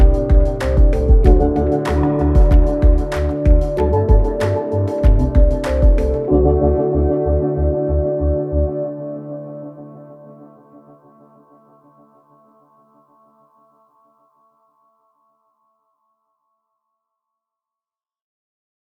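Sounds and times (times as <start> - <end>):
downtempo music: 0.0 - 11.4.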